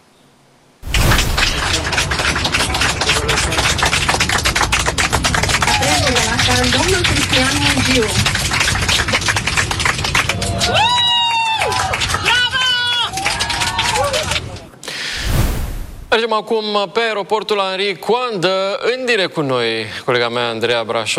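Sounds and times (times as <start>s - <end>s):
passengers applauding inside airplane cabin: 0.8s - 14.8s
speech: 7.4s - 8.6s, 16.2s - 21.1s.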